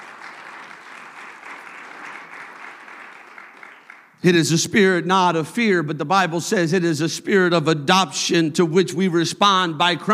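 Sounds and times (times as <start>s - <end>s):
audience clapping hands: 0.0s - 4.2s
speech: 4.2s - 10.1s.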